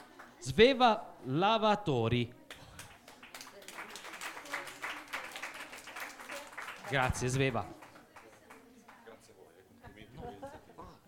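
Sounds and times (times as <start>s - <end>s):
speech: 0.4s - 2.4s, 6.9s - 7.8s
audience applause: 2.9s - 8.6s.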